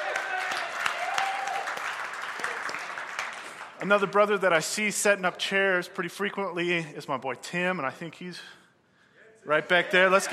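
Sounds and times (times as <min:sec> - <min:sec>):
audience applause: 0:00.0 - 0:04.1, 0:09.7 - 0:10.3
speech: 0:03.8 - 0:08.6, 0:09.4 - 0:10.3.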